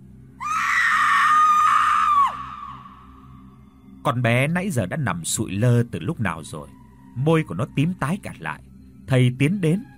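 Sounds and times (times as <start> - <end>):
loud sustained scream voiced as a drowned ghost: 0.4 - 3.3
speech: 4.0 - 9.9.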